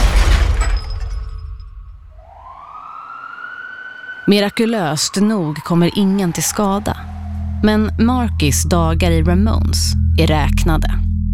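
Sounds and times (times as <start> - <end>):
shop window glass shattering: 0.0 - 2.1
car crashing through shop window: 0.0 - 2.7
speech: 4.3 - 11.0.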